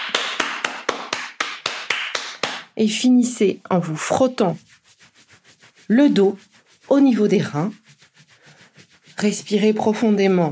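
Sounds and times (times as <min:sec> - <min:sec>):
hand clapping: 0:00.0 - 0:02.8
speech: 0:02.8 - 0:04.8, 0:05.9 - 0:07.8, 0:09.2 - 0:10.4.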